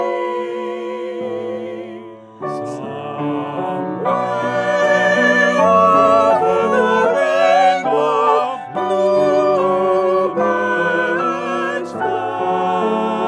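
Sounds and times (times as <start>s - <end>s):
piano accompaniment for an SAB arrangement: 0.0s - 13.2s.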